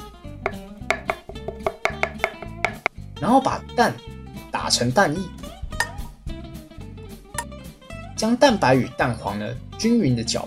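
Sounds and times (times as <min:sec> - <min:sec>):
knife chopping scallions and dicing carrots: 0:00.5 - 0:02.9
speech: 0:03.2 - 0:05.4, 0:08.2 - 0:10.4.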